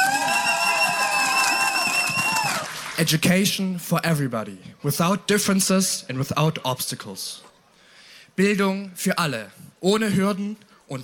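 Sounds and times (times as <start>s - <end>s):
festival audience applause and cheering: 0.0s - 3.2s
speech: 3.0s - 7.5s, 8.4s - 11.0s.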